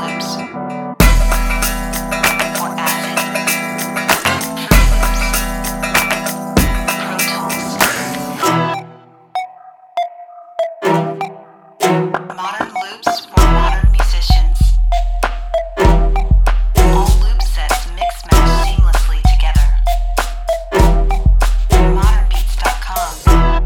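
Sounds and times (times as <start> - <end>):
tribal percussion loops: 1.0 - 8.4, 11.8 - 23.5.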